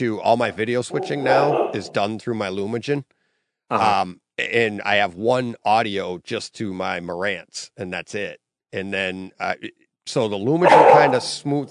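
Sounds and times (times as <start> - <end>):
speech: 0.0 - 11.6
large dog barking: 0.9 - 2.0, 10.6 - 11.4.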